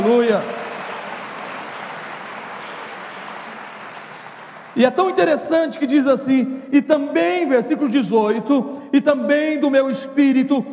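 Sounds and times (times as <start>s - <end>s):
audience applauding: 0.0s - 5.1s
speech: 4.8s - 10.7s.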